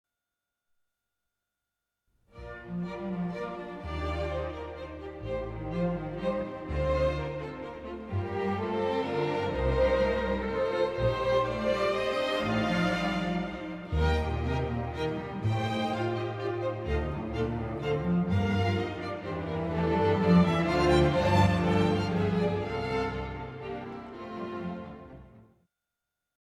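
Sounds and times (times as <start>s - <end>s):
strings: 2.3s - 25.5s.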